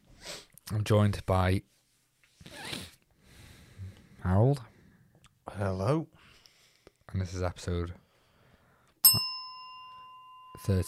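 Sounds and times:
speech: 0.7 - 1.7, 4.2 - 4.7, 5.5 - 6.2, 7.1 - 8.0, 10.6 - 10.8
single bright metallic bell strike: 9.0 - 10.8.

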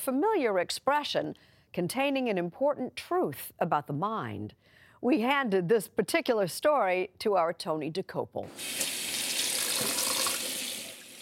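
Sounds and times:
speech: 0.0 - 9.2
tap water running into a sink: 8.5 - 11.1.

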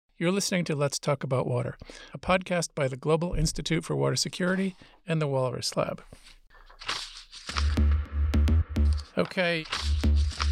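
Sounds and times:
speech: 0.2 - 7.0, 9.2 - 9.9
paper pages being shuffled: 6.0 - 8.0, 8.8 - 10.4.

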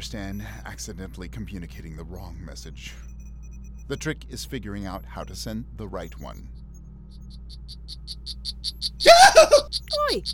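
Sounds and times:
speech: 0.0 - 3.1, 3.9 - 6.6, 7.4 - 10.3
poison frog croaking: 7.3 - 10.3.

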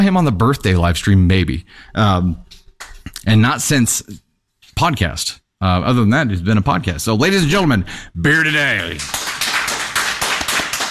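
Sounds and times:
speech: 0.1 - 2.5, 3.2 - 4.2, 4.8 - 9.3
one person clapping: 8.8 - 10.8.

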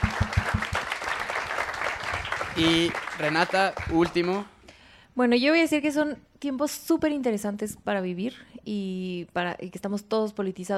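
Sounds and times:
audience applause for a teacher at a public discussion: 0.0 - 4.4
speech: 2.6 - 4.5, 5.2 - 10.7.

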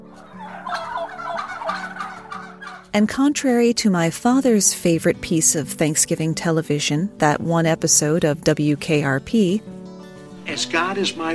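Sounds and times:
turkey gobbling and calling: 0.1 - 2.9
speech: 2.9 - 9.8, 10.5 - 11.3.

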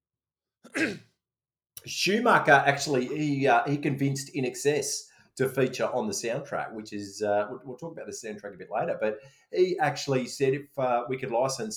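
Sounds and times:
person coughing: 0.7 - 1.1
speech: 0.8 - 1.1, 1.8 - 11.7.

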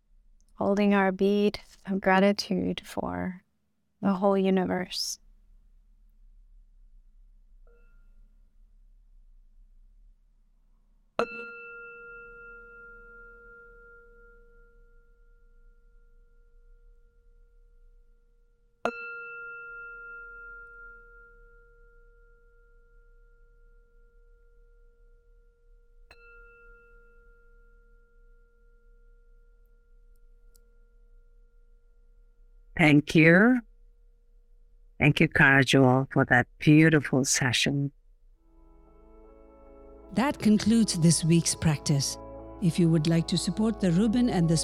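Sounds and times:
speech: 0.6 - 3.4, 4.0 - 5.2, 11.2 - 11.5, 32.8 - 33.7, 35.0 - 38.0, 40.1 - 44.6
meditation bell ringing: 11.2 - 18.2, 18.9 - 32.3, 38.6 - 44.6.

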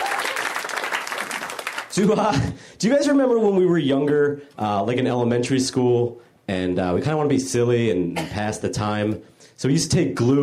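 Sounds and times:
audience applause: 0.0 - 2.0
speech: 2.0 - 10.4.

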